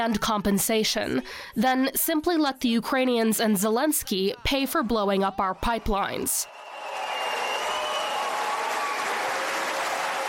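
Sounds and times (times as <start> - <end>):
speech: 0.0 - 6.6
crowd applause: 6.4 - 10.2.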